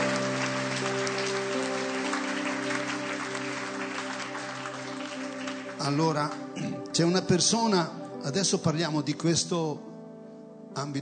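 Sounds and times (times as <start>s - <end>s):
audience applause: 0.0s - 6.5s
speech: 5.8s - 9.9s, 10.8s - 10.9s.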